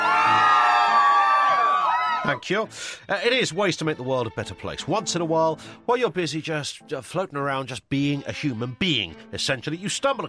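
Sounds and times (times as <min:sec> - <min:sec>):
audience cheering and whooping: 0:00.0 - 0:02.4
speech: 0:02.3 - 0:10.2.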